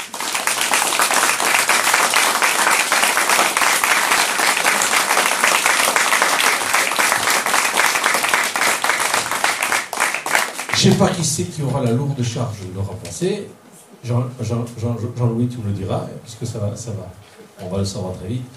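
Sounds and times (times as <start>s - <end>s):
audience applauding: 0.0s - 11.3s
speech: 10.8s - 18.5s.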